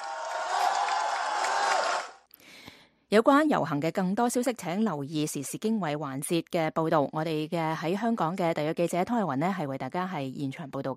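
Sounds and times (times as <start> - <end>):
large crowd clapping loudly: 0.0 - 2.2
speech: 3.1 - 10.9.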